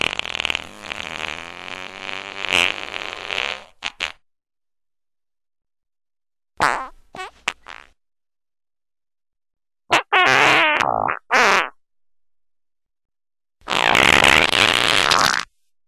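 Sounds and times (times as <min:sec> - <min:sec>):
loud farts: 0:00.0 - 0:04.2, 0:06.6 - 0:08.0, 0:09.9 - 0:11.8, 0:13.6 - 0:15.5.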